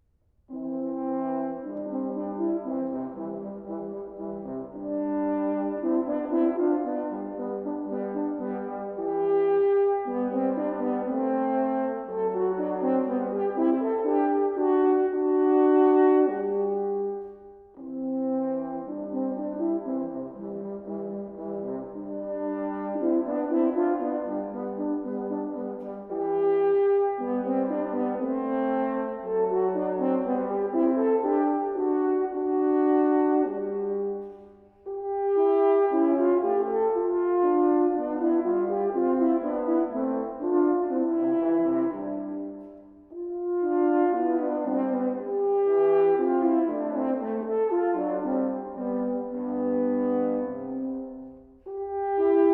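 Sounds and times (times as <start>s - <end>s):
two horns playing an andante duet: 0.5s - 52.5s.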